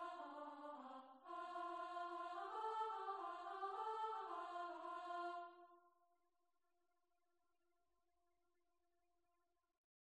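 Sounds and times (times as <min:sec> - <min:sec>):
alto voice from a chorus singing: 0:00.0 - 0:05.6.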